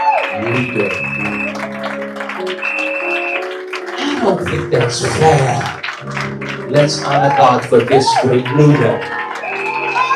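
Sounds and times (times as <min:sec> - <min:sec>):
hand clapping: 0:00.2 - 0:10.1
speech: 0:00.4 - 0:01.5, 0:04.2 - 0:09.2.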